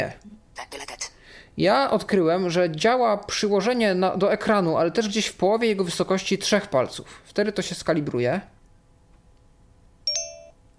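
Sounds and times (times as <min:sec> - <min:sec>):
speech: 0:00.0 - 0:00.3, 0:01.6 - 0:08.6
phone two-note electronic chime: 0:10.1 - 0:10.6.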